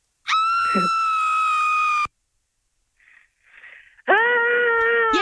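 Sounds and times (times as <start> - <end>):
high-pitched scream: 0.3 - 2.1
person imitating a scream with a lower rougher voice: 0.3 - 2.1, 4.1 - 5.2.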